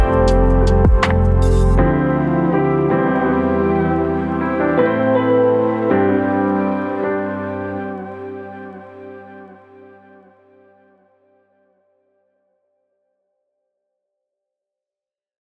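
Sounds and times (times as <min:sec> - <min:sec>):
mellow lofi music: 0:00.0 - 0:10.9.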